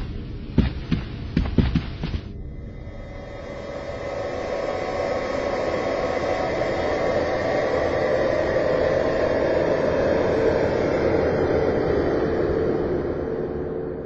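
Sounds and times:
flying saucer sharp pulsing thumps: 0.0s - 2.3s
flying saucer engines low roaring hum: 0.0s - 14.0s.

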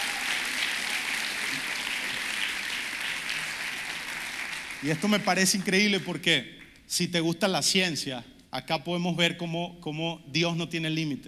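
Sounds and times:
crowd applauding: 0.0s - 6.8s
speech: 4.8s - 11.2s.

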